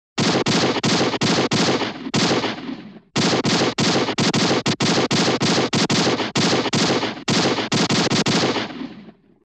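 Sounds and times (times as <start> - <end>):
cartoon gunshots: 0.2 - 9.3.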